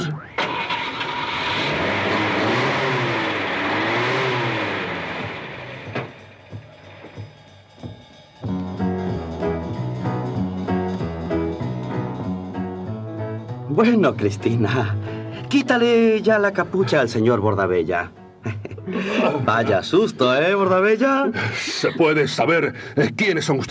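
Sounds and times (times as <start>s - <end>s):
car engine revving and driving off: 0.0s - 7.3s
music: 4.4s - 23.6s
speech: 13.8s - 23.6s
laughter: 18.4s - 20.1s, 21.0s - 23.2s.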